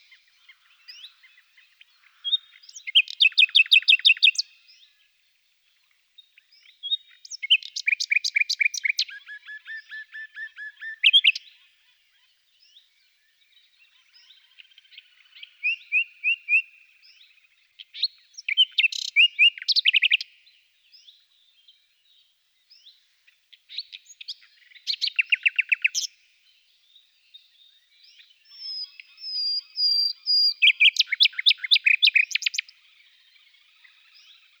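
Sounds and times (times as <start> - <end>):
common nightingale singing: 0.0 - 4.9, 6.3 - 11.6, 12.6 - 21.3, 22.1 - 34.5.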